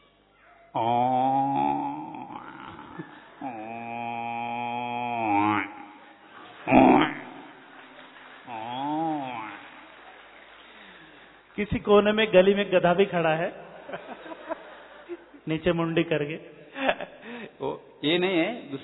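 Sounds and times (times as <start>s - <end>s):
speech: 0.7s - 1.2s, 11.6s - 14.1s, 15.5s - 16.6s, 18.1s - 18.8s
human voice imitating a buffalo: 0.7s - 6.0s, 6.7s - 7.5s, 8.5s - 9.6s
laughter: 1.6s - 11.1s, 13.4s - 15.5s.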